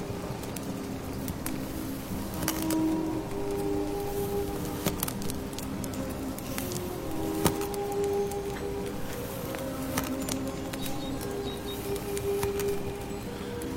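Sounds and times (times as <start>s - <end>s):
brief faint sustained tones: 0.0s - 13.7s
burning firewood crackling and popping: 0.0s - 13.7s
dense steady rustling rain: 0.0s - 13.7s
soup bubbling: 0.6s - 13.7s.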